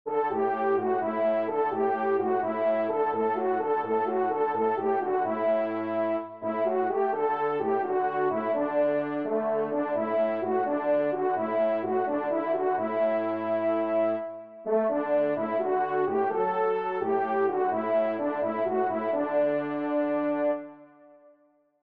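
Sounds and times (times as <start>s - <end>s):
trumpet and horns: 0.1s - 21.2s.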